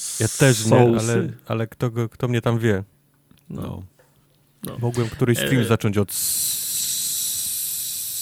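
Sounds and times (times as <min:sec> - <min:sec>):
speech: 0:00.2 - 0:02.9, 0:03.5 - 0:03.9, 0:04.6 - 0:06.6
person hissing through teeth: 0:06.1 - 0:08.2.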